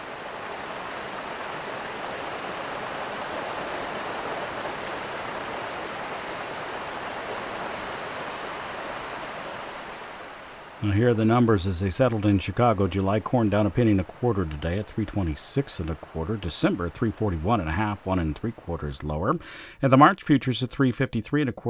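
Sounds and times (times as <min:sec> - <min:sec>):
rain pattering on surfaces: 0:00.0 - 0:21.3
speech: 0:10.8 - 0:21.6.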